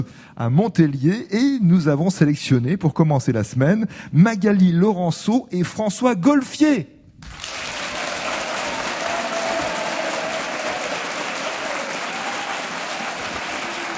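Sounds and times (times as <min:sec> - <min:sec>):
speech: 0:00.0 - 0:07.4
thunderous game show audience applause in Montélier welcoming contestants: 0:07.3 - 0:13.9.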